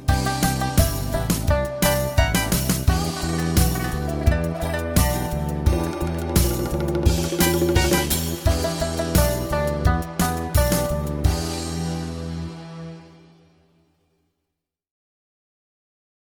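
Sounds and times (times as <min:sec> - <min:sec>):
guitar playing: 0:00.0 - 0:12.9.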